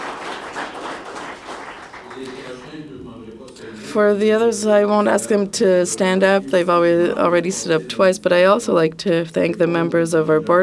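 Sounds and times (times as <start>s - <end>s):
audience applause: 0.0s - 2.9s
speech: 2.2s - 10.6s.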